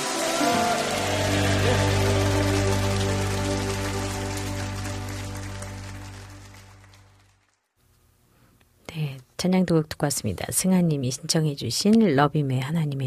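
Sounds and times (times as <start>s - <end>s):
sustained low keyboard chord: 0.0s - 7.1s
audience applause: 0.0s - 7.7s
speech: 9.4s - 13.0s.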